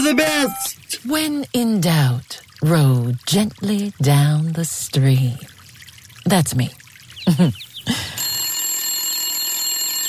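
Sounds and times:
speech: 0:00.0 - 0:05.5, 0:06.2 - 0:08.2
telephone ringing: 0:07.9 - 0:10.0.

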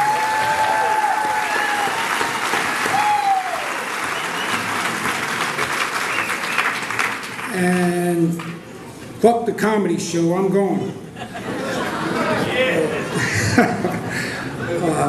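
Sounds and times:
audience applause: 0:00.0 - 0:07.8
speech: 0:09.2 - 0:11.0
laughter: 0:11.1 - 0:15.0.

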